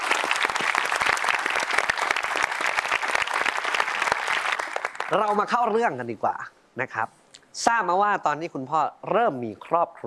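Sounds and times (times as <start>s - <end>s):
audience applause: 0.0s - 5.4s
speech: 5.1s - 10.0s.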